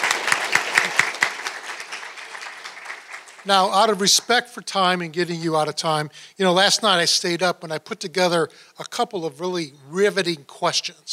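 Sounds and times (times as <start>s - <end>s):
audience applause: 0.0s - 4.2s
speech: 3.4s - 11.1s.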